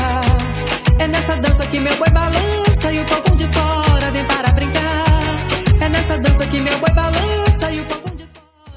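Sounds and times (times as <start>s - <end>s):
90s style drum machine beat: 0.0s - 8.7s.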